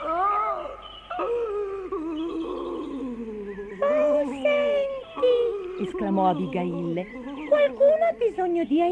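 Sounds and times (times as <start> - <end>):
someone crying in the distance: 0.0 - 5.9
speech: 5.8 - 8.9.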